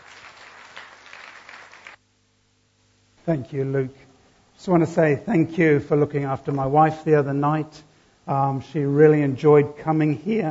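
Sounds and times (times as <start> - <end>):
audience applause: 0.0 - 2.0
speech: 3.2 - 4.0, 4.6 - 10.4.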